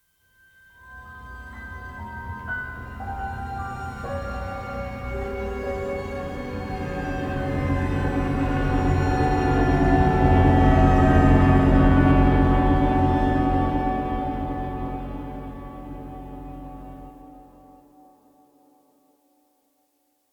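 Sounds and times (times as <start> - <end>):
creepy music: 0.8 - 17.6.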